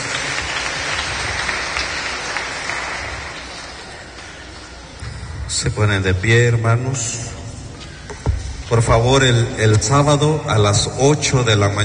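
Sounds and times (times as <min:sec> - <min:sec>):
audience clapping: 0:00.0 - 0:05.0
speech: 0:05.6 - 0:07.4, 0:08.7 - 0:11.8.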